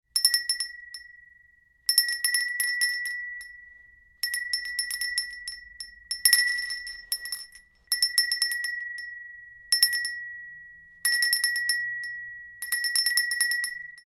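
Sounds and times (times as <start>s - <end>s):
small ceramic bell tinkling: 0.1s - 14.0s.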